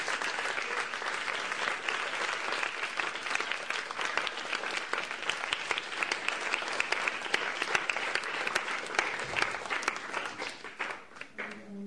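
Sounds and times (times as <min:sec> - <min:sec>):
audience applause: 0:00.0 - 0:11.7.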